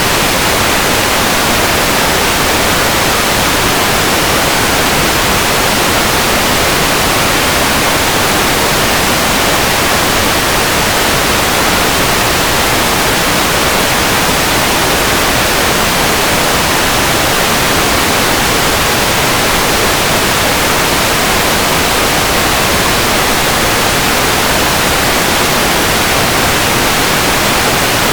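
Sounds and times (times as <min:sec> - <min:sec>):
rain: 0:00.0 - 0:28.1.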